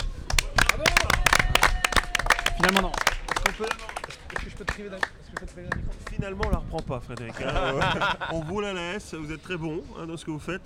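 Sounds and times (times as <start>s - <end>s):
audience applause: 0.0s - 5.1s
speech: 2.6s - 10.6s
laughter: 7.3s - 8.7s.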